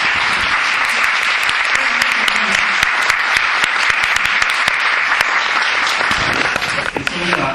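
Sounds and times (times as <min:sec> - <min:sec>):
audience applause after a lecture: 0:00.0 - 0:07.4.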